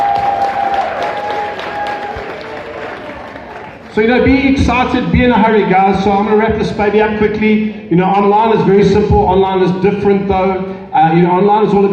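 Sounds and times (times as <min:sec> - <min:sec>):
audience applause: 0:00.0 - 0:04.0
speech: 0:04.0 - 0:11.9.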